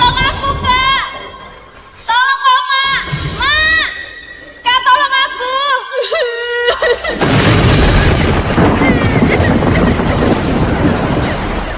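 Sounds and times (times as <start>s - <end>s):
high wavering cry: 0.0s - 7.2s
laughter: 0.0s - 11.7s
violent ocean waves crashing against ships: 0.0s - 11.7s.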